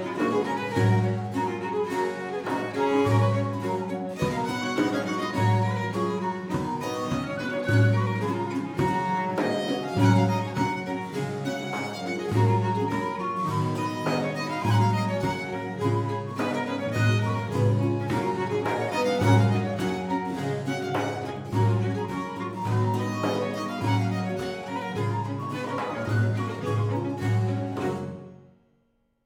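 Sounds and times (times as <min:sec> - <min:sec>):
traditional English country dance music: 0:00.0 - 0:28.4.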